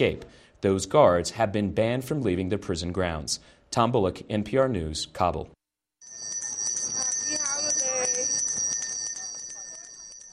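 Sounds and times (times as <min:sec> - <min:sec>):
speech: 0:00.0 - 0:05.6
Salvation Army bell ringer's handbell ringing outside Macy's in Herald Square, New York: 0:06.0 - 0:10.3.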